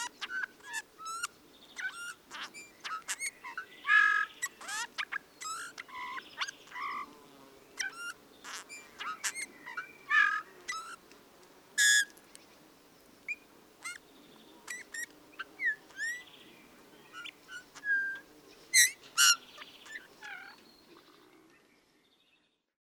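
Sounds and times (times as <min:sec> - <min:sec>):
bullfinch calling: 0:00.0 - 0:07.1, 0:07.8 - 0:11.0, 0:14.7 - 0:16.3, 0:18.8 - 0:20.6.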